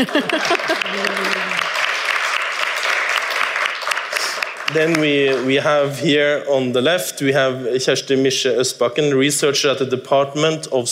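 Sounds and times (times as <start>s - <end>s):
speech: 0.0s - 1.2s, 4.7s - 10.9s
laughter: 0.0s - 1.7s
audience applause: 0.0s - 5.5s.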